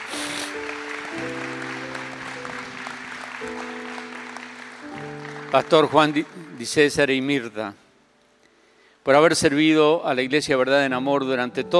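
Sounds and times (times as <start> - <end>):
audience applause: 0.0 - 7.4
speech: 5.5 - 7.8, 9.0 - 11.7.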